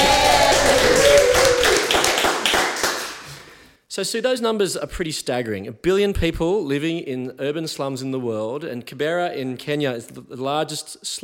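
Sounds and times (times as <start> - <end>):
audience applause: 0.0 - 3.6
speech: 4.0 - 11.2.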